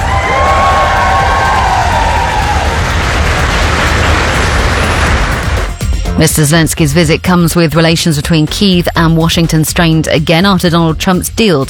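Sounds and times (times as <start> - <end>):
Foreign Office staff cheering Volodymyr Zelensky's arrival in Downing Street: 0.0 - 5.7
speech: 6.2 - 11.6.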